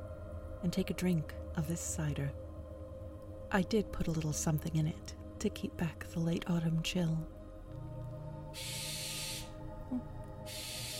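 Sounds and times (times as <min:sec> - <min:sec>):
speech: 0:00.6 - 0:02.4, 0:03.5 - 0:07.4, 0:08.5 - 0:08.8, 0:09.9 - 0:10.6
barn owl screeching: 0:08.6 - 0:09.6, 0:10.5 - 0:10.9.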